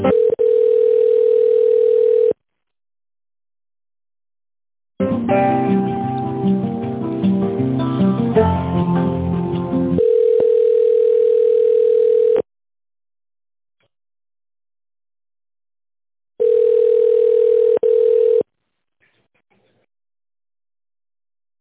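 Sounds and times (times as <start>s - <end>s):
telephone ringback tone during call transfer to a pharmacy help line: 0.0s - 2.4s, 10.0s - 12.5s, 16.4s - 18.5s
melodic hold music: 5.0s - 10.0s.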